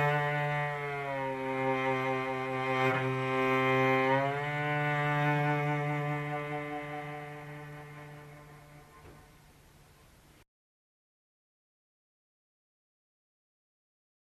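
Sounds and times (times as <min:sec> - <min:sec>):
musical improvisation: 0:00.0 - 0:09.6.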